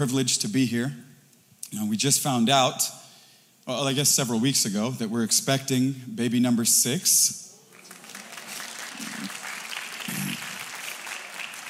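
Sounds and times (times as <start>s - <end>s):
speech: 0.0s - 1.1s, 1.7s - 3.0s, 3.7s - 7.5s
audience applause: 7.6s - 11.6s.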